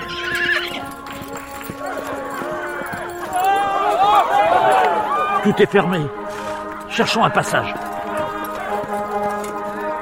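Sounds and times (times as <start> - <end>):
Rocinante, Don Quixote's horse, neighing: 0.0 - 0.9
Rocinante's hooves clopping: 0.0 - 10.0
speech: 5.4 - 6.3, 7.0 - 7.9.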